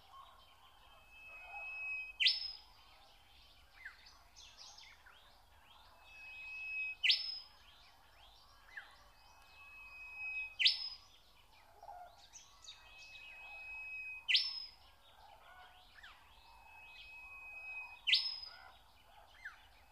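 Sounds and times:
bird chorus: 0.0s - 19.9s
nightingale singing: 0.6s - 2.8s, 5.8s - 11.5s, 12.2s - 15.1s, 15.8s - 19.9s.

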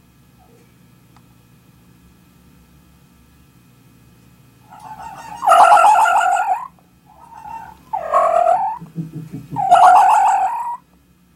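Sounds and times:
fox wailing cry: 4.7s - 8.8s, 9.6s - 10.8s.

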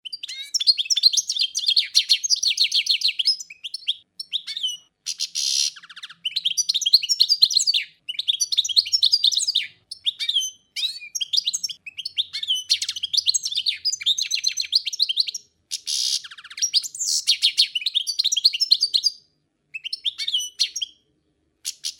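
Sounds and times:
European goldfinch twittering: 0.0s - 19.2s, 19.8s - 21.0s, 21.6s - 21.9s.

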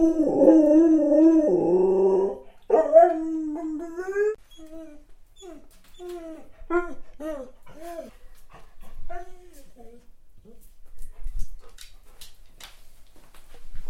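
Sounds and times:
dog howling and whining: 0.0s - 8.1s.

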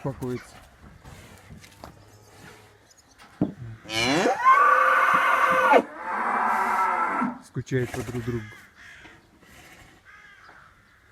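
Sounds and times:
speech: 0.0s - 0.7s, 7.6s - 8.6s
bull bellowing: 3.9s - 7.4s.

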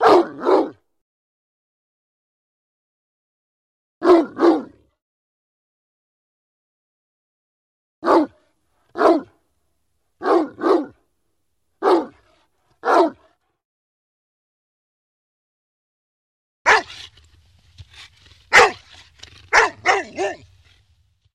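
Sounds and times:
dog barking: 0.0s - 0.8s, 4.0s - 4.9s, 8.0s - 9.4s, 10.2s - 11.0s, 11.8s - 13.4s, 16.7s - 17.0s, 18.5s - 18.9s, 19.5s - 20.5s.

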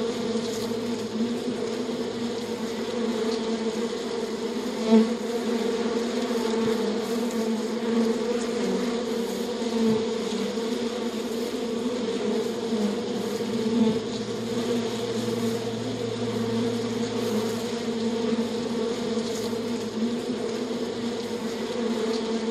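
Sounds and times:
bees buzzing: 0.0s - 22.4s.

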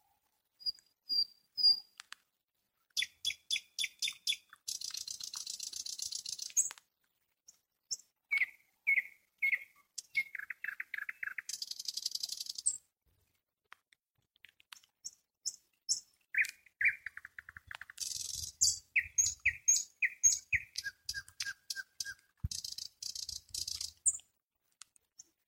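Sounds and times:
nightingale singing: 0.6s - 2.0s, 2.9s - 6.8s, 7.5s - 12.8s, 15.0s - 24.3s.

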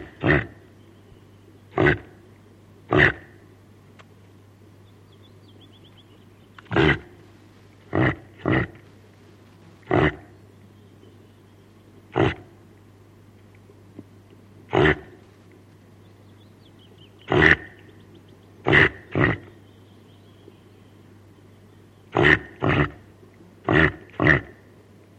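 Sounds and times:
reindeer grunts: 0.0s - 0.6s, 1.7s - 2.2s, 2.9s - 3.4s, 6.6s - 7.2s, 7.9s - 8.8s, 9.8s - 10.4s, 12.1s - 12.6s, 14.7s - 15.2s, 17.3s - 17.8s, 18.6s - 19.5s, 22.1s - 24.6s
faint low hum: 0.0s - 25.1s.

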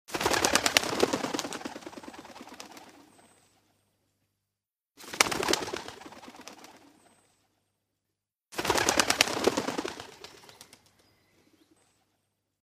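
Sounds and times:
bird wing flaps: 0.1s - 3.4s, 5.0s - 7.1s, 8.6s - 11.1s.

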